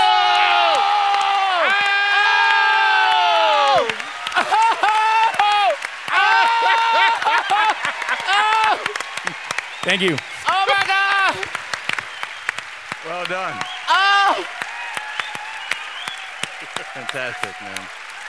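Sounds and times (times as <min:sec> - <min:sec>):
loud applause: 0:00.0 - 0:18.2
many voices cheering and whooping: 0:00.0 - 0:18.2
laughter: 0:03.8 - 0:09.4
speech: 0:09.9 - 0:10.3, 0:13.2 - 0:14.6, 0:17.0 - 0:18.0.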